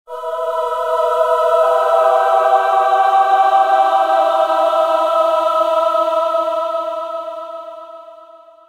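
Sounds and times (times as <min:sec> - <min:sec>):
choir singing: 0:00.1 - 0:08.6.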